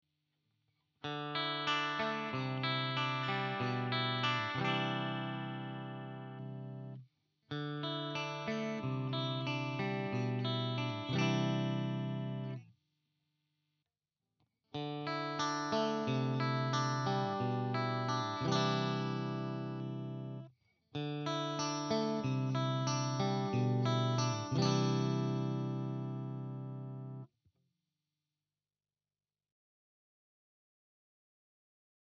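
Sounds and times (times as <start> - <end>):
clean Fender Am Pro guitar with push pull: 1.0 - 12.6, 14.8 - 27.3.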